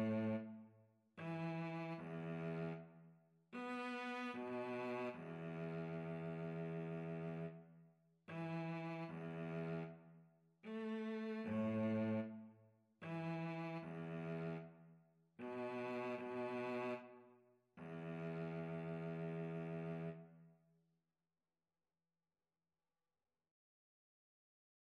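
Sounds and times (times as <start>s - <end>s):
viola and cello duet: 0.0s - 0.5s, 1.2s - 2.9s, 3.6s - 7.6s, 8.3s - 10.0s, 10.6s - 12.4s, 13.0s - 14.7s, 15.4s - 17.2s, 17.8s - 20.2s.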